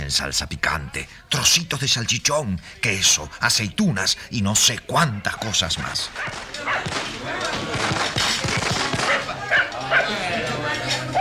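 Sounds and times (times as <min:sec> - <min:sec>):
voices murmuring: 0:00.0 - 0:11.1
speech: 0:00.1 - 0:08.4
frightened dogs barking and yelping: 0:06.0 - 0:11.1.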